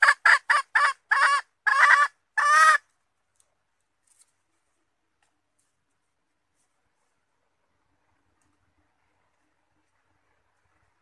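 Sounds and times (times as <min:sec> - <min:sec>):
red junglefowl hen clucking: 0:00.0 - 0:02.9.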